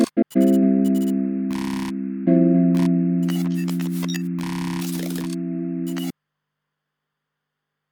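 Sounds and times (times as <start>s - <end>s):
crunk music: 0.1s - 6.1s.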